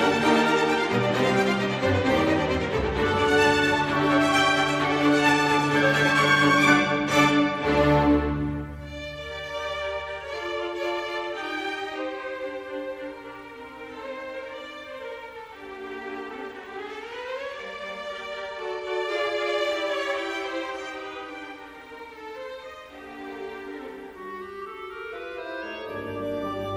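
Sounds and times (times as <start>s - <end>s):
orchestral symphony movement recapitulation: 0.0s - 26.7s.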